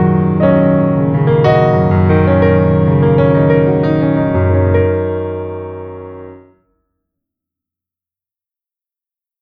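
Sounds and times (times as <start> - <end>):
piano: 0.0 - 6.8.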